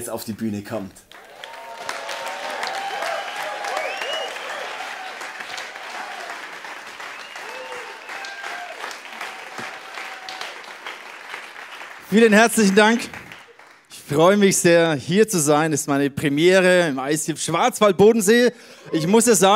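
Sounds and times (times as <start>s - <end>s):
speech: 0.0s - 1.2s, 12.1s - 13.2s, 14.1s - 19.5s
audience applause: 1.1s - 13.9s.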